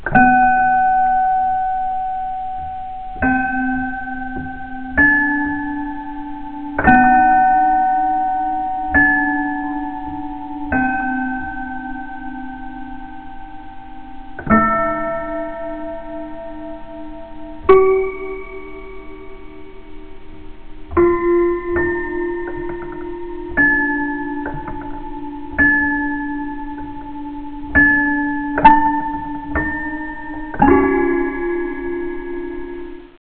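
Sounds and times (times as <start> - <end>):
piano: 0.0 - 33.2.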